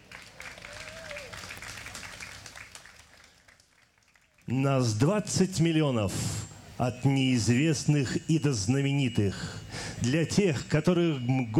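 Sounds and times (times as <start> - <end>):
audience applause: 0.0 - 4.5
speech: 4.5 - 11.5
faint whistle-like tone: 6.2 - 11.5.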